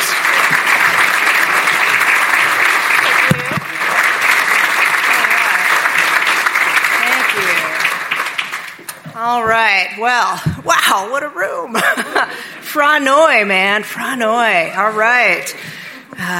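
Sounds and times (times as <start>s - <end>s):
audience applause from a large crowd: 0.0s - 9.0s
speech: 9.6s - 16.3s.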